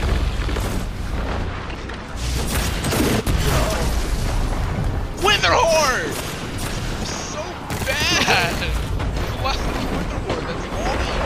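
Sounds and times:
grenade explosion in a shooter video game: 0.0 - 11.2.

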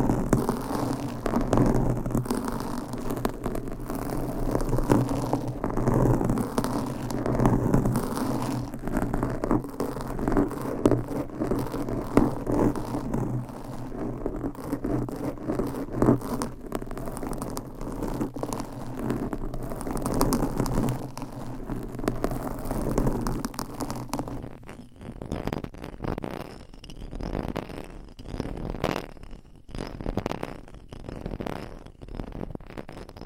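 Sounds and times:
nails scratching across a microphone cover: 0.0 - 33.2.

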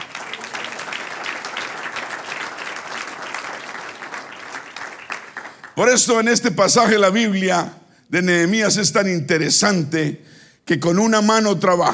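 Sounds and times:
audience applause: 0.0 - 5.8
speech: 5.8 - 11.9.

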